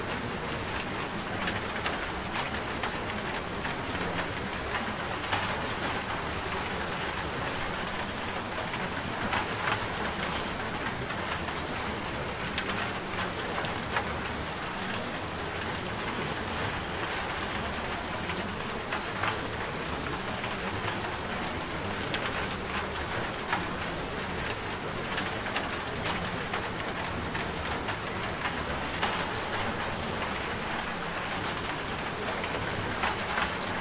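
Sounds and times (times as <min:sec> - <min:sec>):
rain: 0:00.0 - 0:33.7.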